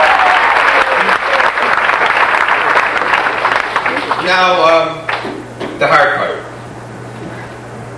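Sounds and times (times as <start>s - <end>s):
crowd applause: 0.0s - 5.2s
speech: 4.3s - 5.0s, 5.8s - 6.2s.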